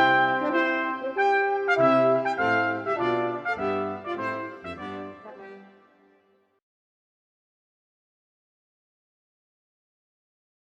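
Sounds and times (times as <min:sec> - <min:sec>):
brass quintet playing: 0:00.0 - 0:06.2.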